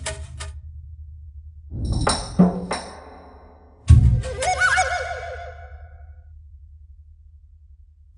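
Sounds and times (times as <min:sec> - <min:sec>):
jungle level music: 0:01.7 - 0:05.9.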